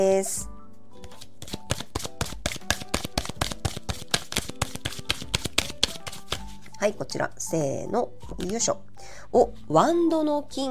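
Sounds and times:
speech: 0.0s - 0.5s, 6.8s - 10.6s
tarot cards being shuffled and drawn: 1.0s - 6.7s.

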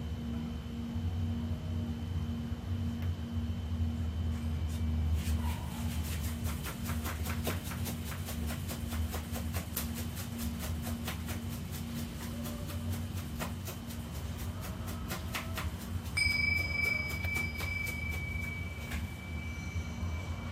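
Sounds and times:
low hum: 0.0s - 20.4s
singing bowl ringing in a live sound healing from Mexico: 16.2s - 20.4s.

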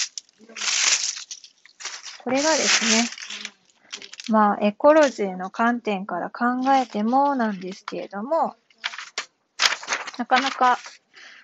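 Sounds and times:
packing material crinkling while packing a parcel: 0.0s - 4.3s, 5.0s - 5.2s, 6.6s - 8.2s, 8.8s - 11.2s
speech: 2.2s - 3.2s, 4.3s - 8.6s, 10.2s - 10.9s.

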